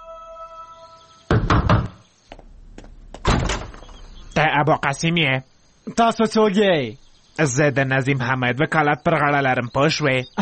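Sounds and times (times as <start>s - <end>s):
knocking on a wooden door: 1.3s - 2.4s
speech: 4.4s - 10.4s.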